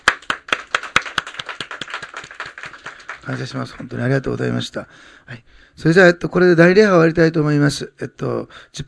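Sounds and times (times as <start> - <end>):
group applauding in welcome: 0.0 - 4.3
speech: 3.3 - 8.8.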